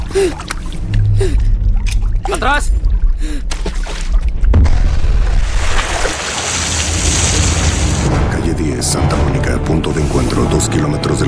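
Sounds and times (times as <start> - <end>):
churning water in a swimming pool: 0.0 - 8.3
speech: 0.2 - 0.6, 2.4 - 3.5, 8.8 - 11.2
grenade exploding in a swimming pool: 4.2 - 8.5.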